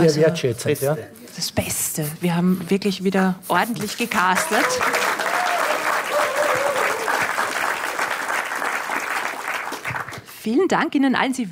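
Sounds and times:
speech: 0.0s - 5.2s, 10.4s - 11.5s
audience clapping: 3.8s - 10.4s
audience cheering: 4.3s - 10.1s.

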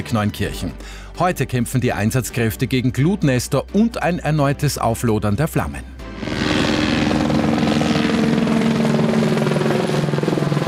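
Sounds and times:
speech: 0.0s - 6.4s
firefighting helicopters flying overhead: 6.2s - 10.6s.

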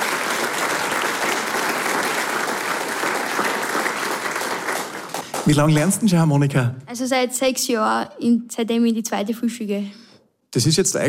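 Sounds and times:
audience applause: 0.0s - 6.0s
speech: 5.5s - 11.0s.

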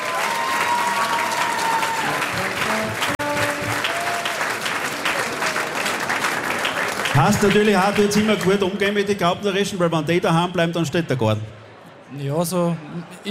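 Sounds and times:
audience applause: 0.0s - 9.2s
speech: 7.2s - 13.2s.

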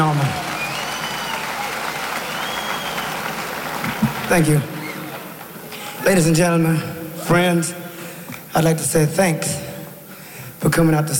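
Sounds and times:
crowd applause for the band: 0.0s - 6.2s
faint whistle-like cheers: 0.2s - 4.1s
speech: 4.3s - 4.7s, 6.1s - 7.8s, 8.5s - 9.6s, 10.6s - 11.1s.

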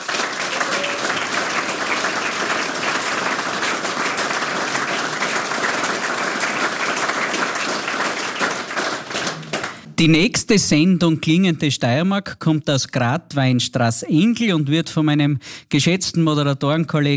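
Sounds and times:
audience applause: 0.0s - 10.0s
speech: 10.0s - 17.1s.

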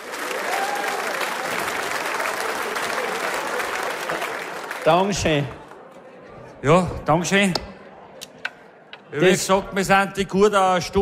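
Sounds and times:
audience applause: 0.0s - 5.9s
speech: 4.8s - 5.6s, 6.6s - 7.7s, 9.1s - 11.0s.

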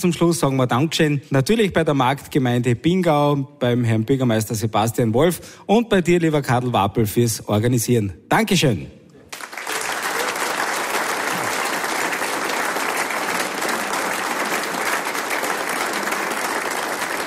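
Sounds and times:
speech: 0.0s - 9.0s
audience applause: 9.3s - 17.2s.

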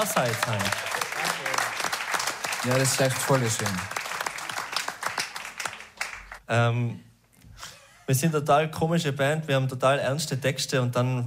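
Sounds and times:
speech: 0.0s - 1.0s, 2.6s - 4.0s, 6.5s - 7.1s, 8.1s - 11.2s
audience applause: 0.0s - 6.4s.

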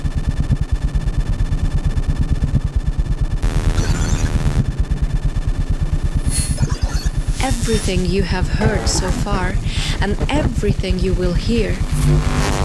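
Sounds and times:
amplified electrical hum of household devices: 0.0s - 12.6s
hissing static: 6.1s - 12.6s
speech: 7.7s - 12.6s.

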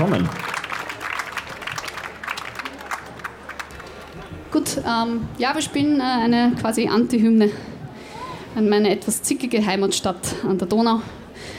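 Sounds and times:
speech: 0.0s - 0.5s, 4.6s - 7.7s, 8.5s - 11.2s
audience applause: 0.0s - 4.5s.

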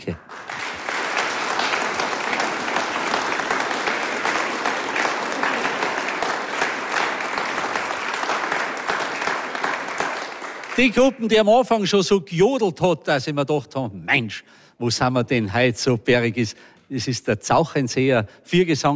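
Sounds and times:
audience applause: 0.0s - 11.3s
speech: 10.8s - 18.9s.

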